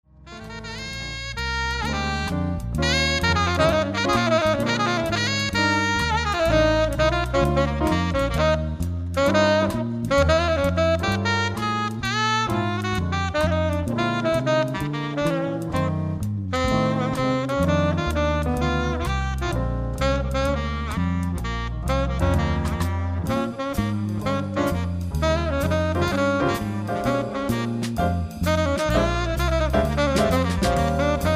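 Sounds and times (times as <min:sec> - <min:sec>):
jazz band playing: 0:00.2 - 0:31.3.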